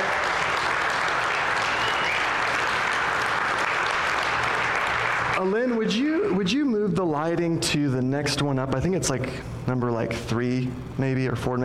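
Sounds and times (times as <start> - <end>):
crowd clapping: 0.0 - 5.6
speech: 5.4 - 11.6.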